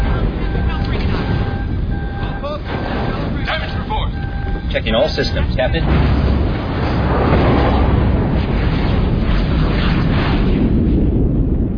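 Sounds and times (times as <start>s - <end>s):
subspace shockwave blast: 0.0s - 11.7s
speech: 4.8s - 6.2s.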